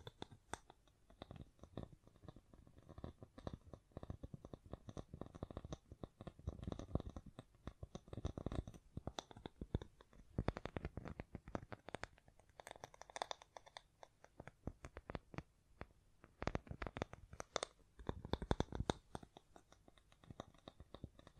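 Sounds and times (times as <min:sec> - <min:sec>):
fingers tapping, scratching and brushing against a microphone: 0:00.0 - 0:21.3.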